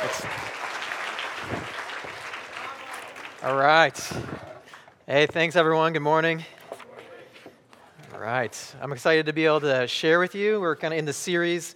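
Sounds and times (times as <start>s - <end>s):
audience applause: 0.0s - 4.6s
speech: 0.1s - 0.6s, 3.4s - 4.5s, 5.1s - 6.6s, 8.2s - 11.7s.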